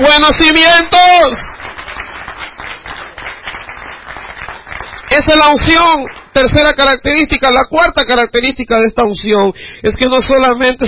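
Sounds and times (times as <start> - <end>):
speech: 0.0 - 1.6, 5.1 - 10.8
audience applause: 1.2 - 6.3.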